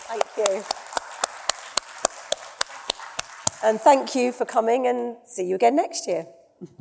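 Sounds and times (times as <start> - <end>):
sharp claps: 0.0 - 3.8
speech: 0.1 - 0.9, 3.6 - 6.7.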